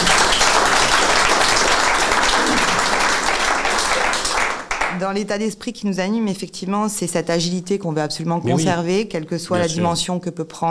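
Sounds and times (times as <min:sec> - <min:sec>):
audience applause: 0:00.0 - 0:05.0
speech: 0:05.0 - 0:10.6.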